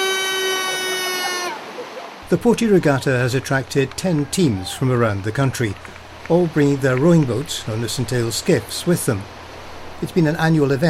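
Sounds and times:
horn blaring: 0.0 - 1.6
speech: 2.3 - 9.4, 10.0 - 10.8.

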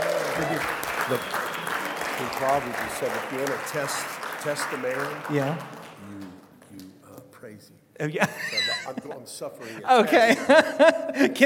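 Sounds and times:
audience applause: 0.0 - 6.4
speech: 0.4 - 1.5, 2.2 - 6.8, 7.5 - 11.4
laughter: 8.2 - 11.4.

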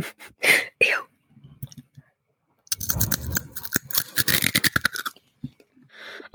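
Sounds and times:
crackling chewing: 2.7 - 5.2
crunchy bite of food: 2.7 - 5.2.

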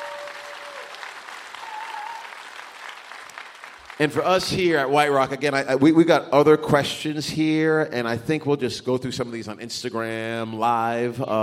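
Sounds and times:
audience round of applause: 0.0 - 4.5
speech: 4.0 - 11.4.

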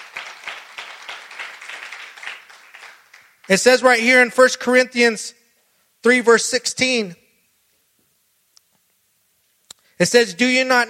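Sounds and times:
audience clapping: 0.0 - 4.1
speech: 3.5 - 5.4, 6.0 - 7.2, 10.0 - 10.8.

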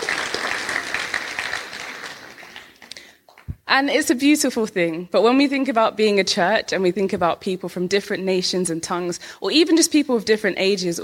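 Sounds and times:
audience round of applause: 0.0 - 3.5
speech: 3.7 - 11.0.

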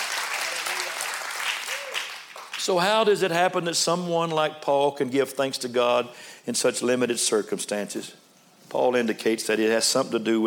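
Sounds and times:
audience clapping hands: 0.0 - 2.8
speech: 2.6 - 10.4.

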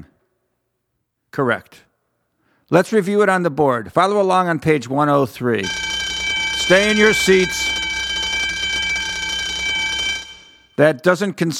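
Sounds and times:
speech: 1.4 - 1.9, 2.7 - 5.9, 6.7 - 7.8, 10.8 - 11.5
school bell ringing: 5.6 - 10.7.

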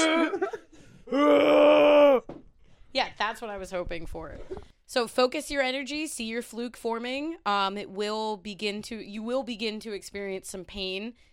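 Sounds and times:
voice imitating a whale's cry: 1.1 - 2.3
speech: 3.2 - 11.3.

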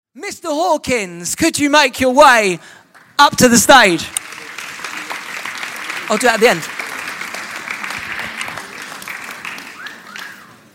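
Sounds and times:
speech: 0.2 - 4.3, 6.1 - 6.8
audience applause: 3.8 - 10.7
wolf whistle: 9.7 - 10.6.

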